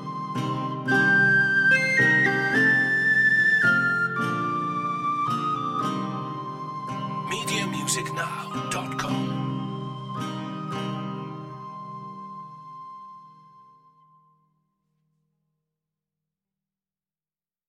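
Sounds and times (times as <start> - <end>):
medieval love story music: 0.0 - 13.5.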